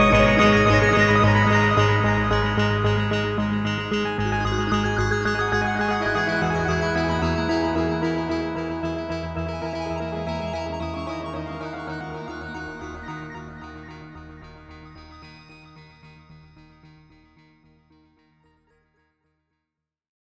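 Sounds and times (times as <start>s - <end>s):
Hydrasynth synthesizer arpeggio: 0.0s - 14.9s.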